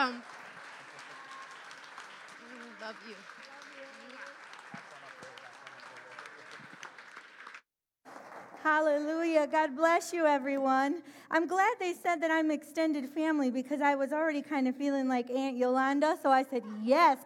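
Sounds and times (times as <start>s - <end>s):
audience applause and cheering: 0.0s - 8.6s
speech: 2.9s - 3.9s, 8.6s - 17.2s.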